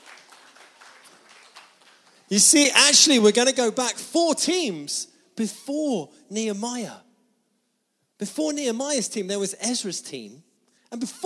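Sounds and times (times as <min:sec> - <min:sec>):
group clapping: 0:00.0 - 0:02.3
speech: 0:02.3 - 0:07.0, 0:08.2 - 0:11.2.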